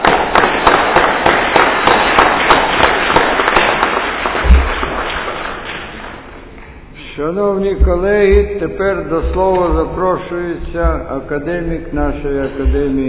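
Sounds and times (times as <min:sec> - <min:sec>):
enthusiastic crowd applause: 0:00.0 - 0:06.2
speech: 0:07.2 - 0:13.0.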